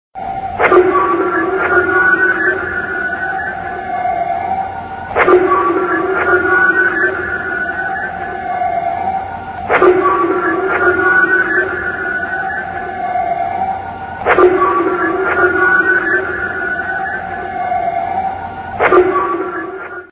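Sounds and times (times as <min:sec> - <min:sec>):
signal sound: 0:00.2 - 0:20.1.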